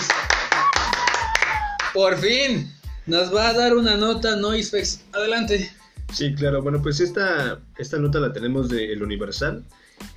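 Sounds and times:
applause: 0:00.0 - 0:02.0
speech: 0:02.0 - 0:10.1.

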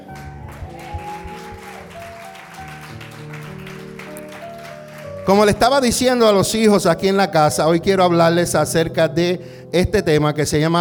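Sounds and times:
applause: 0:00.0 - 0:06.0
sustained musical chords: 0:00.0 - 0:07.8
speech: 0:05.3 - 0:10.8.

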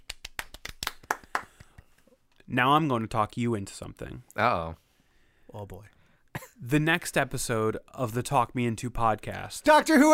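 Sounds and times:
person clapping hands: 0:00.0 - 0:02.0
speech: 0:02.5 - 0:04.8, 0:05.5 - 0:06.0, 0:06.6 - 0:10.1.

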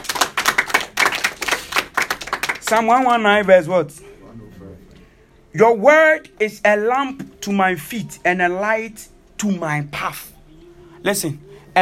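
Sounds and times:
audience clapping: 0:00.0 - 0:03.5
speech: 0:02.7 - 0:04.0, 0:05.5 - 0:10.3, 0:11.0 - 0:11.7.

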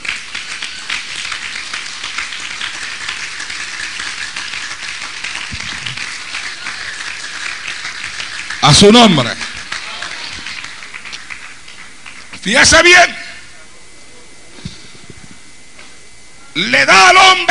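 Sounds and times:
audience applause: 0:00.0 - 0:12.4
speech: 0:08.7 - 0:09.4, 0:12.5 - 0:13.2, 0:16.6 - 0:17.4.

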